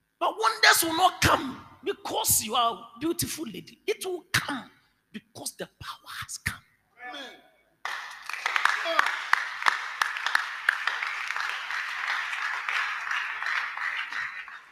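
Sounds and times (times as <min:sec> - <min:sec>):
speech: 0:00.4 - 0:07.4
weak audience clapping: 0:07.8 - 0:14.7.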